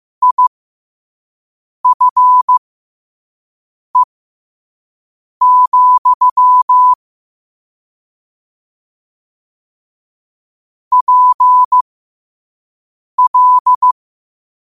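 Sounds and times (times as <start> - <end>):
morse code at 5 wpm: 0.2 - 0.4, 1.8 - 2.6, 5.4 - 7.0, 10.9 - 11.8, 13.2 - 14.0.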